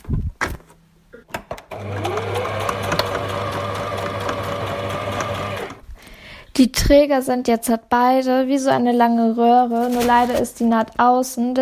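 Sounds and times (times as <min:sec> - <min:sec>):
sewing machine stitching fabric: 0:01.7 - 0:05.8
speech: 0:06.6 - 0:11.6.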